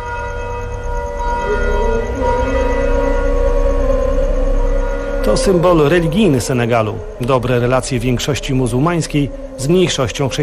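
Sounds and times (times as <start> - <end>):
church bells ringing: 0.0 - 10.4
call to prayer: 1.4 - 10.4
speech: 5.2 - 10.4.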